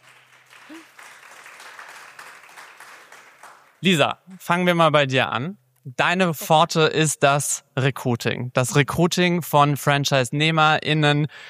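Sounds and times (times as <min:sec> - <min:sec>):
small group clapping: 0:00.0 - 0:04.5
speech: 0:03.8 - 0:11.4.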